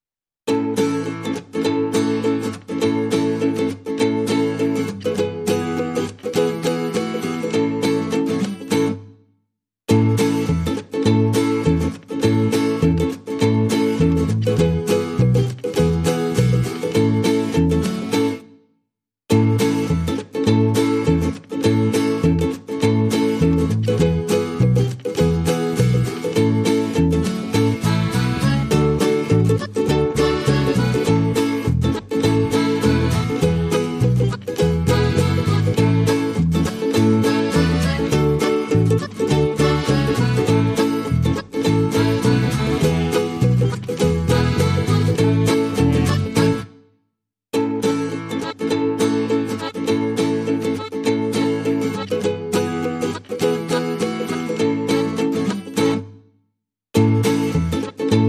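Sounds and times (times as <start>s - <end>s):
underscore music without drums: 0.4s - 58.2s.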